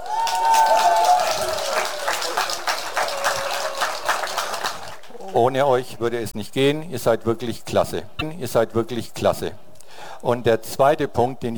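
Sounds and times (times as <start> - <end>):
applause: 0.0 - 5.4
speech: 5.4 - 9.6, 10.2 - 11.5.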